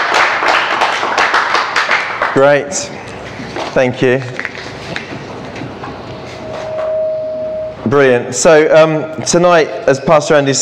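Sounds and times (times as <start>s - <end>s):
audience clapping: 0.0s - 2.6s
speech: 2.4s - 5.0s, 7.9s - 10.6s.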